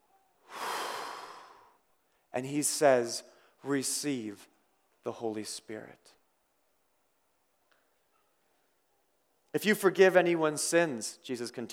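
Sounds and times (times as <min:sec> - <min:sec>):
preacher blowing out a long breath: 0:00.5 - 0:01.8
speech: 0:02.4 - 0:06.2, 0:09.5 - 0:11.7.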